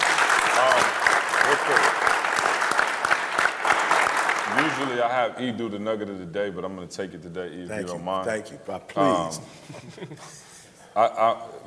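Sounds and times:
audience applause: 0.0s - 5.1s
speech: 0.6s - 2.2s, 4.6s - 10.4s, 11.0s - 11.6s.

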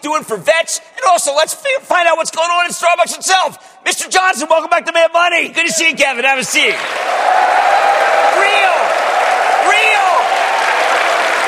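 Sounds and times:
speech: 0.0s - 8.8s
audience applause and cheering: 6.5s - 11.4s.

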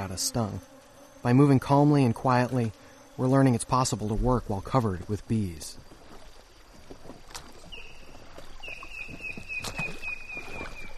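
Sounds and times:
speech: 0.0s - 5.8s
paddling rafts and kayaks on river: 4.0s - 10.9s.

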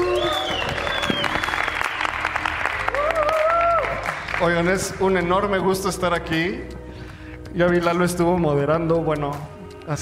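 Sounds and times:
whistle-like tones: 0.0s - 2.3s
cheers: 0.0s - 4.5s
audience applause: 0.0s - 4.7s
speech: 4.4s - 6.8s, 7.6s - 10.0s.

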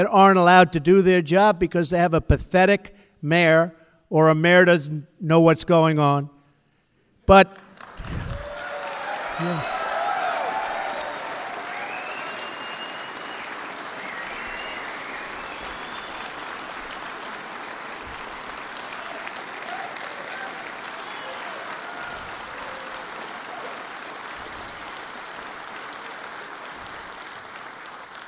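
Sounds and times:
speech: 0.0s - 6.4s, 7.3s - 7.6s, 9.4s - 9.8s
audience applause: 7.6s - 28.2s.

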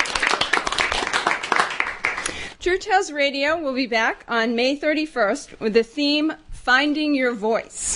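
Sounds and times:
studio audience applause: 0.0s - 2.3s
speech: 2.6s - 7.9s.

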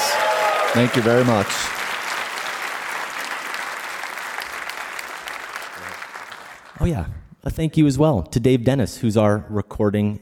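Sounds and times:
audience applause: 0.0s - 6.9s
speech: 0.7s - 1.8s, 6.8s - 10.2s.

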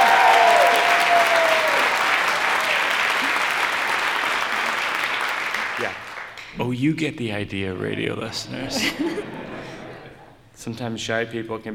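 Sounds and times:
audience round of applause: 0.0s - 6.5s
speech: 6.6s - 9.5s, 10.6s - 11.7s
laughter: 8.4s - 10.4s.

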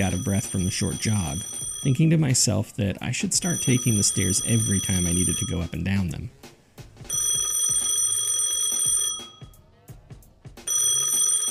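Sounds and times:
desk telephone ringing: 0.0s - 2.5s, 3.4s - 6.3s, 7.1s - 9.6s, 10.6s - 11.4s
speech: 0.0s - 7.2s.

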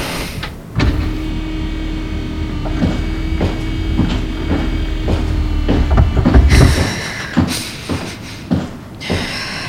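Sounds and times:
door being opened: 0.0s - 6.9s.

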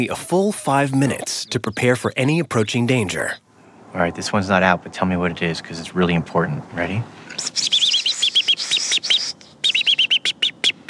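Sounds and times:
speech: 0.0s - 7.8s
American robin alarm call: 0.6s - 3.4s, 7.4s - 10.8s.

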